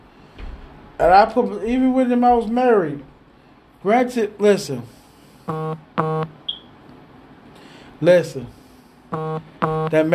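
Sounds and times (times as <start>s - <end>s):
speech: 1.0s - 3.1s, 3.8s - 6.4s, 8.0s - 10.1s
mobile phone beeping: 5.5s - 6.7s, 9.1s - 10.1s
mobile phone high chirp: 9.2s - 10.0s.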